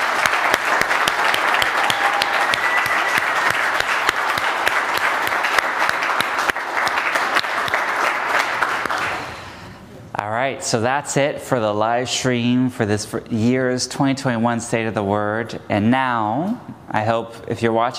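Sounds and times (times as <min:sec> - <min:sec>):
round of applause: 0:00.0 - 0:09.4
speech: 0:10.6 - 0:17.9.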